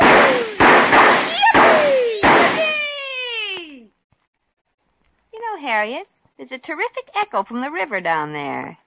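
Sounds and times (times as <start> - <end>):
fireworks being fired: 0.0 - 3.6
speech: 5.7 - 8.8.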